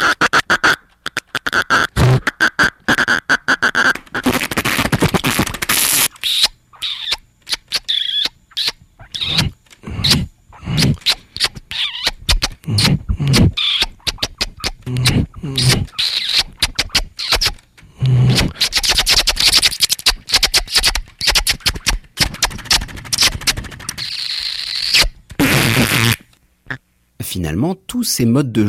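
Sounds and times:
squeaky mouth bursts: 0.0 - 26.8
wet buzzing lip vibrations like flatulent raspberries: 0.0 - 26.8
sharp smacking kiss sounds: 4.0 - 26.4
speech: 27.6 - 28.6.

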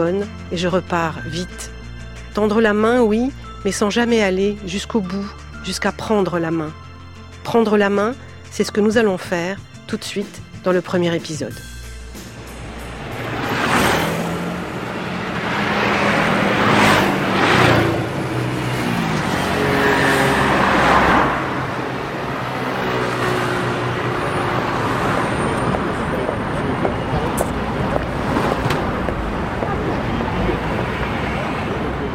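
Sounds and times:
speech: 0.0 - 1.8, 2.4 - 6.8, 7.4 - 11.7
city boulevard traffic in the rain on Boulevard Saint-Martin: 12.1 - 32.1.

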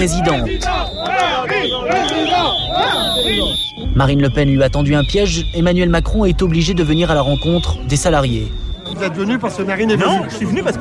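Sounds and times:
crowd booing and shouting: 0.0 - 3.8
steady high whine: 0.0 - 9.0
speech: 0.0 - 10.7.

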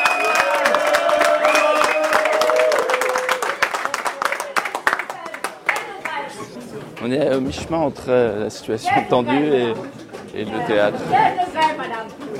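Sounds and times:
crowd applauding: 0.0 - 6.2
speech: 7.0 - 11.9.

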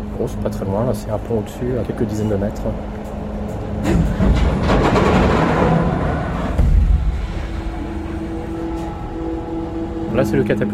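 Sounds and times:
speech: 0.2 - 3.0, 3.8 - 5.2, 10.2 - 10.7
aircraft carrier catapult shuttle returning along its track: 2.8 - 10.2.

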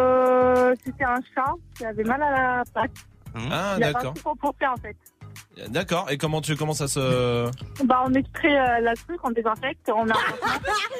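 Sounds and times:
speech: 0.7 - 10.9
laugh sound effect from soundboard button: 10.1 - 10.9.

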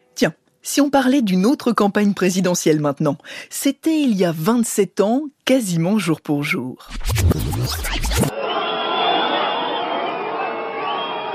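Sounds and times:
speech: 0.2 - 8.3
concert crowd cheering and whistling: 8.1 - 11.3.

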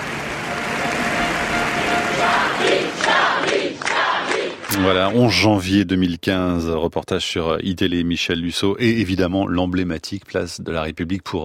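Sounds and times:
crowd applauding at a demonstration: 0.0 - 5.4
speech: 4.8 - 11.4.

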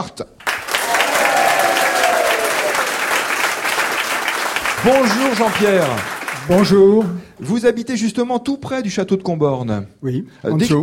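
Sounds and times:
speech: 0.0 - 0.4, 4.8 - 10.8
rural village audience applauding: 0.4 - 7.4.

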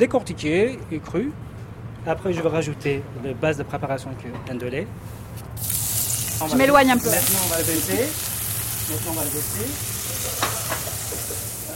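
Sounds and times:
speech: 0.0 - 5.8, 6.4 - 8.3, 8.9 - 10.4
peeled raw shrimp and beef sizzling in a pan for ndolé: 5.6 - 11.7.

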